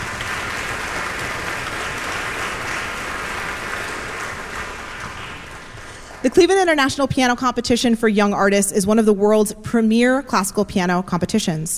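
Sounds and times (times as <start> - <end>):
audience applause: 0.0 - 6.4
speech: 6.2 - 11.7.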